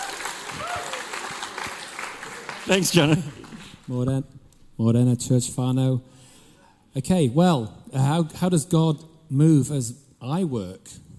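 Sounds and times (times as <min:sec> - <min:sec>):
audience applause: 0:00.0 - 0:04.0
speech: 0:02.7 - 0:06.2, 0:06.9 - 0:11.0.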